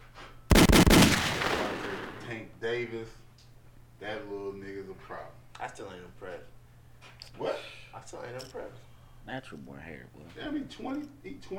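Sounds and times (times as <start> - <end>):
rapid gunfire sound effect: 0.5 - 2.5
speech: 2.4 - 3.2, 4.0 - 6.5, 7.4 - 11.5.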